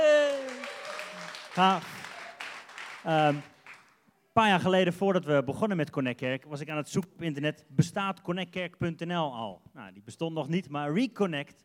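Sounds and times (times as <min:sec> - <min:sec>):
audience applause: 0:00.0 - 0:04.0
speech: 0:01.6 - 0:01.9, 0:03.0 - 0:03.5, 0:04.4 - 0:11.6.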